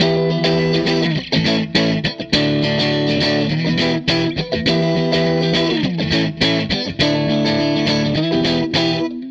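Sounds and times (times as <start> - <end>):
Strat guitar loop: 0.0 - 9.3.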